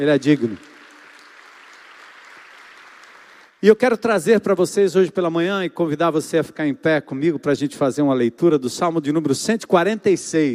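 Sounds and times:
speech: 0:00.0 - 0:00.7, 0:03.6 - 0:10.5
audience applause: 0:00.0 - 0:03.6.

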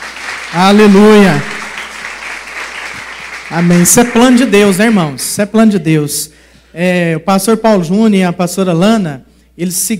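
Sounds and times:
crowd applauding: 0:00.0 - 0:05.3
speech: 0:00.5 - 0:01.5, 0:03.5 - 0:09.9.

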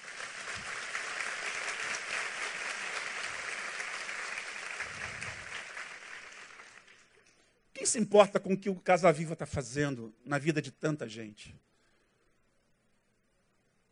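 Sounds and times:
audience applauding: 0:00.0 - 0:07.2
speech: 0:07.8 - 0:11.7.

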